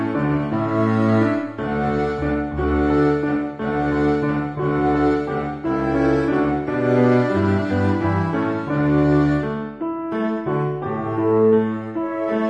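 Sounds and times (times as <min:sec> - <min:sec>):
piano and orchestra: 0:00.0 - 0:12.4.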